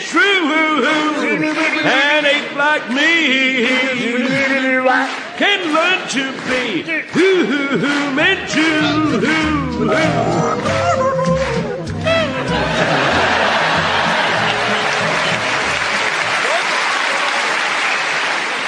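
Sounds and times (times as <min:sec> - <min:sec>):
large crowd singing raggedly out of unison: 0:00.0 - 0:14.8
loud sustained applause: 0:00.0 - 0:18.6
laughter: 0:00.8 - 0:02.5, 0:07.1 - 0:17.6
speech: 0:00.8 - 0:11.0.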